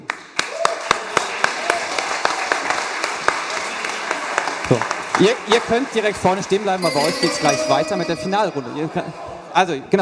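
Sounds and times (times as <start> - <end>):
audience applauding: 0.0 - 5.2
speech: 4.7 - 10.0.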